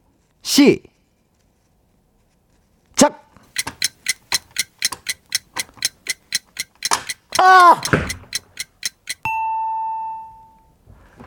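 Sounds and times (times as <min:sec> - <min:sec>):
speech: 0:00.6 - 0:00.9
countdown timer ticking: 0:03.5 - 0:09.3.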